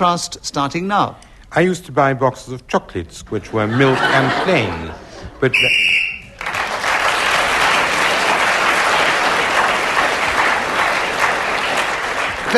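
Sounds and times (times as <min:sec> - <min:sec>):
speech: 0:00.0 - 0:06.5
laughter: 0:03.5 - 0:05.7
audience applause: 0:05.9 - 0:12.5.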